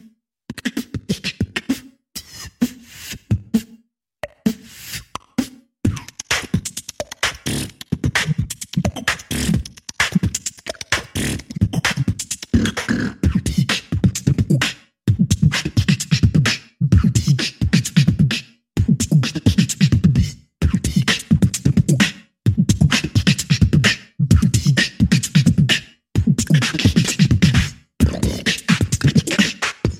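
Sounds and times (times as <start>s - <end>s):
beatbox rhythm: 0.0s - 29.9s.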